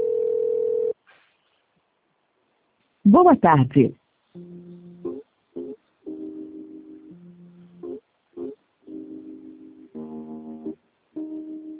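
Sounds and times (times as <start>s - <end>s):
telephone ringing tone while a call is transferred: 0.0s - 1.0s
speech: 3.1s - 4.6s.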